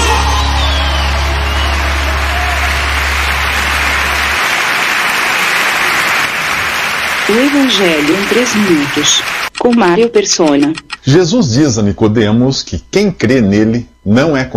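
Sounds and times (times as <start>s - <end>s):
audience applauding: 0.0s - 9.6s
speech: 7.3s - 14.5s.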